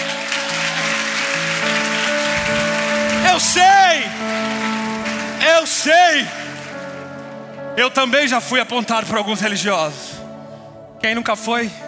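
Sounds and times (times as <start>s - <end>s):
applause: 0.0s - 7.4s
speech: 3.4s - 4.8s, 5.5s - 6.6s, 7.8s - 10.2s, 11.0s - 11.8s.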